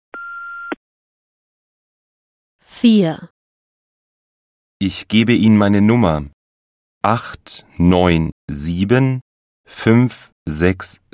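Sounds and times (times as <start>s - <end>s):
answering machine beep signaling start of a message: 0.2s - 0.8s
speech: 2.8s - 3.3s, 4.8s - 6.4s, 7.0s - 11.1s.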